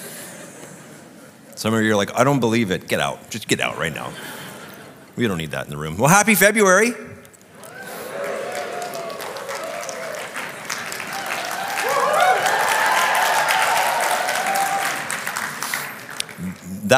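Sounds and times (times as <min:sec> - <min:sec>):
speech: 0:01.6 - 0:04.4, 0:05.2 - 0:07.1
crowd applause: 0:07.6 - 0:16.9.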